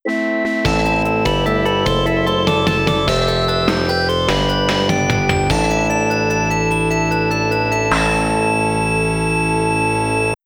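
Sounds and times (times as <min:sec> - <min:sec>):
FM synth final stage complete jingle: 0:00.1 - 0:10.4.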